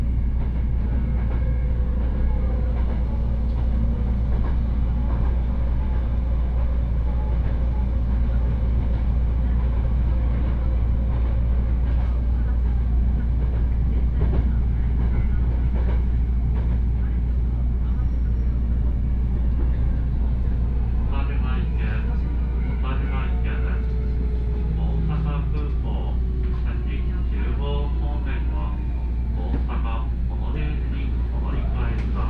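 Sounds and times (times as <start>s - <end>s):
train rumble: 0.0s - 32.2s
faint voices on train: 7.5s - 32.2s.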